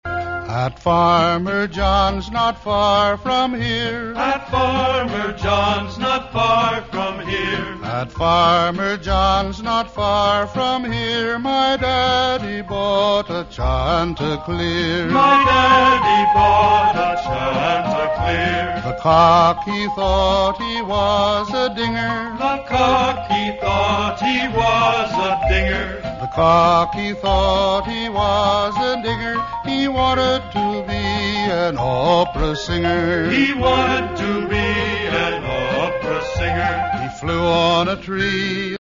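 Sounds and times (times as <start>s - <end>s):
tenor voice singing: 0.1s - 38.7s.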